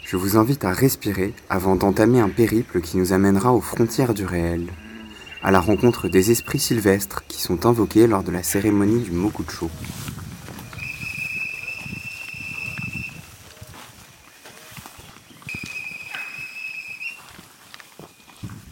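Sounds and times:
birdsong in forest: 0:00.0 - 0:09.7, 0:10.5 - 0:18.5
speech: 0:00.1 - 0:04.8, 0:05.4 - 0:10.1
human whistling in forest: 0:10.8 - 0:13.2, 0:15.5 - 0:17.2.

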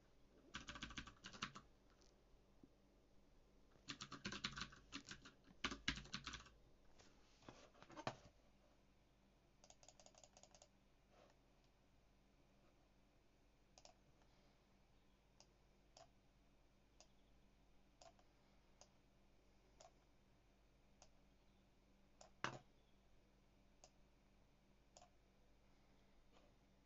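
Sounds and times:
faint low hum: 0:00.0 - 0:26.8
typing on a mechanical keyboard: 0:00.5 - 0:01.6, 0:03.8 - 0:06.5, 0:09.6 - 0:10.7.

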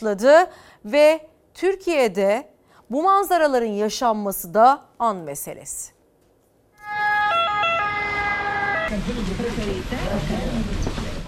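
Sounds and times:
speech: 0:00.0 - 0:06.0, 0:08.9 - 0:10.8
loud two-tone ambulance siren: 0:06.8 - 0:09.0
rumbling traffic-like noise: 0:07.2 - 0:11.2.

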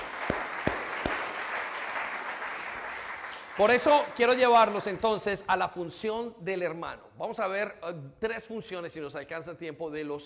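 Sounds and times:
crowd applauding in a large room: 0:00.0 - 0:05.0
speech: 0:03.6 - 0:10.2.

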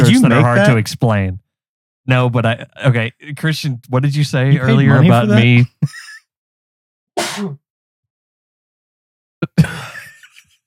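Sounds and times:
laughter: 0:00.0 - 0:00.8, 0:03.6 - 0:06.2, 0:09.4 - 0:10.6
speech: 0:00.1 - 0:01.4, 0:02.1 - 0:06.1, 0:07.2 - 0:07.6
sneeze: 0:07.2 - 0:07.6.

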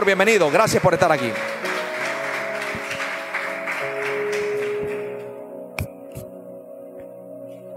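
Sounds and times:
speech: 0:00.0 - 0:01.5
audience applause: 0:00.0 - 0:05.4
sustained keyboard chord: 0:00.0 - 0:07.7.

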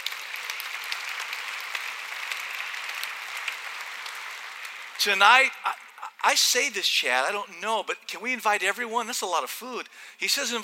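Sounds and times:
audience applause: 0:00.0 - 0:06.3
speech: 0:05.0 - 0:10.6.

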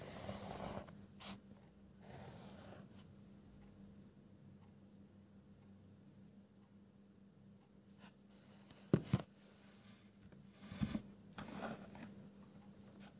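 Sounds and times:
pencil scribbling: 0:00.0 - 0:00.9, 0:02.0 - 0:02.8
low steady hum: 0:00.0 - 0:13.1.

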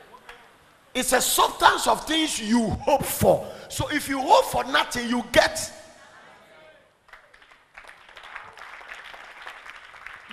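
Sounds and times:
speech: 0:01.0 - 0:05.8
church congregation clapping during a sermon: 0:07.0 - 0:10.3.

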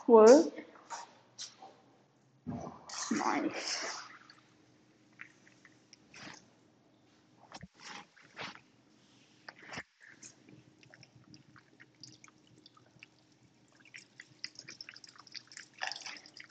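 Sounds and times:
speech: 0:00.1 - 0:00.6, 0:03.2 - 0:04.0
running water over hands being washed: 0:10.8 - 0:16.4.

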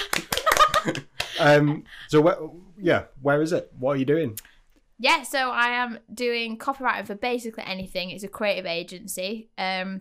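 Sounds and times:
hands clapping: 0:00.0 - 0:01.5
speech: 0:00.8 - 0:10.0.

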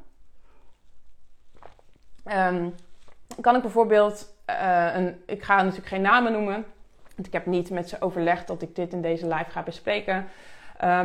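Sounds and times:
sip of tea: 0:00.1 - 0:03.4
speech: 0:02.3 - 0:11.0.

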